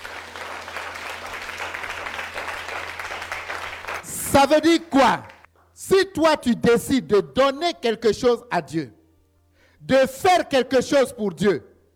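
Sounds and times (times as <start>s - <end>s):
church congregation applauding during a sermon: 0.0s - 5.5s
speech: 4.3s - 9.0s, 9.8s - 11.7s.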